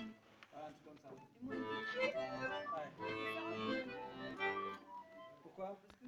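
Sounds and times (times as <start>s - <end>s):
voice: 0.5s - 6.0s
two flutes: 2.6s - 5.6s.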